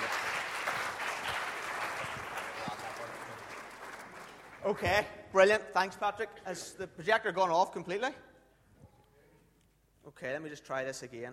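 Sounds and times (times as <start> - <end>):
audience applause: 0.0 - 4.6
speech: 4.7 - 8.3, 10.1 - 11.3.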